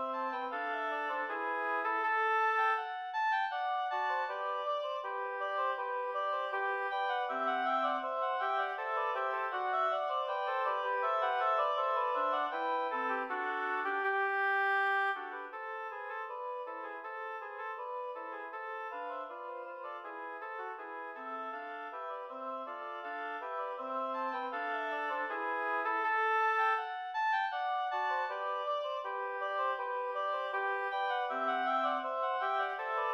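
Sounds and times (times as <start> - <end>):
oboe trio playing a march: 0.0 - 2.8, 3.4 - 33.1.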